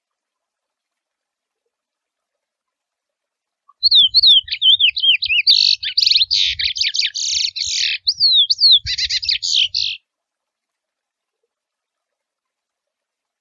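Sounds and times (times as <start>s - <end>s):
wild curió seedeater singing: 3.8s - 10.0s.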